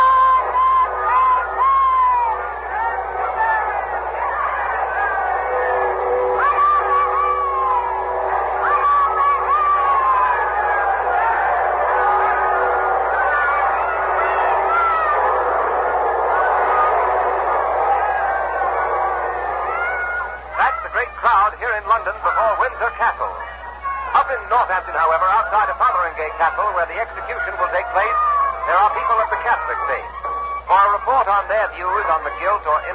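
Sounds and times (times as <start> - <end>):
crowd shouting outside Windsor Castle: 0.0 - 32.9.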